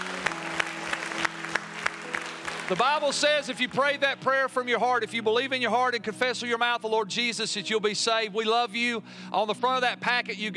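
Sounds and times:
audience unison clapping in praise: 0.0 - 4.1
speech: 2.7 - 10.5.

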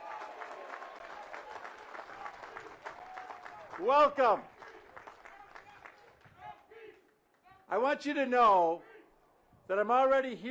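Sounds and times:
audience applause: 0.0 - 6.2
speech: 3.8 - 4.5, 7.7 - 8.9, 9.7 - 10.4.

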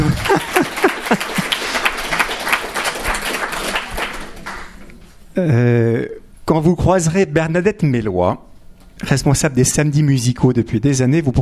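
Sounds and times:
laughter: 0.0 - 2.0
audience applause: 0.0 - 4.8
speech: 5.4 - 5.7, 6.6 - 11.4.

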